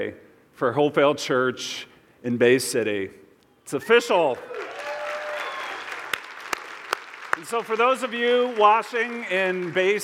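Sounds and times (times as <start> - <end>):
speech: 0.0 - 4.6, 7.4 - 10.0
audience applauding: 4.5 - 10.0.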